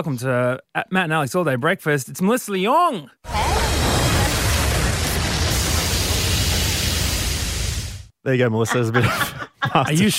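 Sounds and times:
speech: 0.0s - 3.8s, 8.2s - 10.1s
flame sound effect: 3.3s - 8.1s
laughter: 8.6s - 10.1s.

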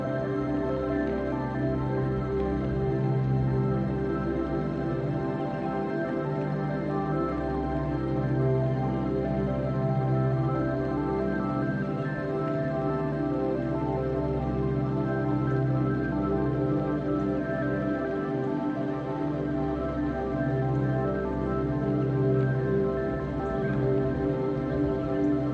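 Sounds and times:
gentle synth pads: 0.0s - 25.5s.

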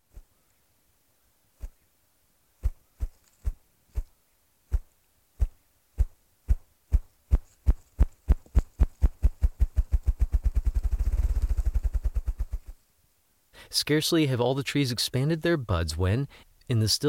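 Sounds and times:
partridge drumming with its wings: 4.7s - 12.8s
speech: 13.7s - 17.0s.

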